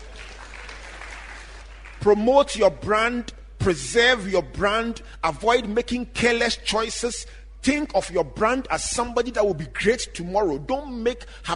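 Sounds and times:
crowd applause: 0.0 - 2.0
speech: 2.0 - 11.5.

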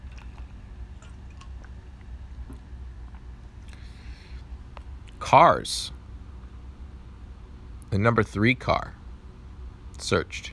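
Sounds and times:
person drinking water: 0.0 - 4.4
low steady hum: 0.0 - 10.5
speech: 5.3 - 6.0, 7.9 - 9.0, 10.0 - 10.5.

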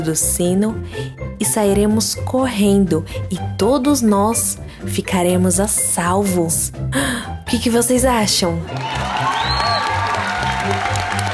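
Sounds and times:
speech: 0.0 - 9.6
group applause: 8.6 - 11.3.

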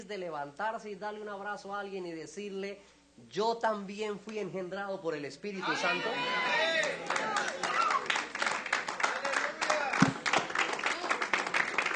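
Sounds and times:
speech: 0.0 - 7.8
audience applause: 6.6 - 11.9.

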